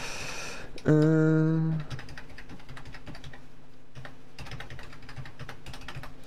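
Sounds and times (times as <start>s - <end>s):
speech: 0.8s - 1.5s
typing on a computer keyboard: 1.8s - 3.4s, 4.0s - 6.1s.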